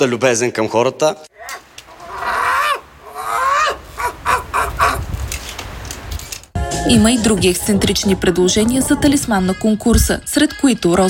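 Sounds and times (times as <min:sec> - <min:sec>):
speech: 0:00.0 - 0:01.6, 0:06.9 - 0:11.0
seagull calling: 0:01.4 - 0:05.1.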